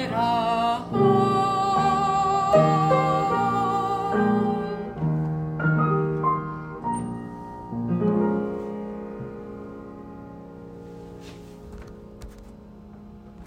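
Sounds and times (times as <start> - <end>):
person singing: 0.0 - 5.1
piano: 0.0 - 13.4.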